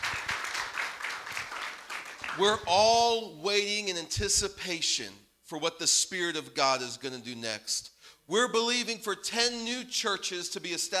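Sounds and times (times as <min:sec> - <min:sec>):
audience applause: 0:00.0 - 0:03.0
speech: 0:02.4 - 0:10.9.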